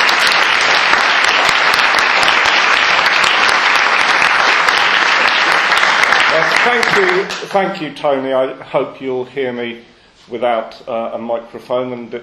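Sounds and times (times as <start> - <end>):
Stop the War audience in Newcastle clapping to welcome a speaker: 0.0 - 7.8
speech: 6.6 - 12.2.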